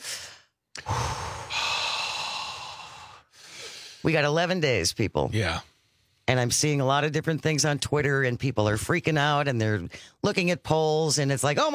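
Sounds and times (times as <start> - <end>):
group taking deep cleansing breaths together: 0.0 - 4.0
speech: 4.0 - 5.7, 6.3 - 11.7.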